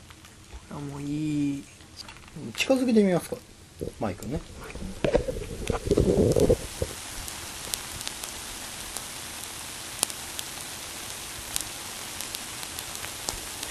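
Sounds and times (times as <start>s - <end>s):
rain falling: 0.0s - 13.6s
speech: 0.7s - 6.9s
loud rumbling noise: 3.2s - 8.1s.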